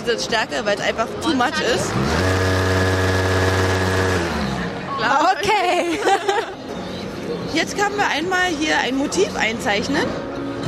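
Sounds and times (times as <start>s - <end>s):
speech: 0.0s - 2.8s, 5.0s - 6.5s, 7.5s - 10.6s
vibrating motor of sex machine humming: 1.9s - 4.8s
laughter: 5.6s - 6.6s.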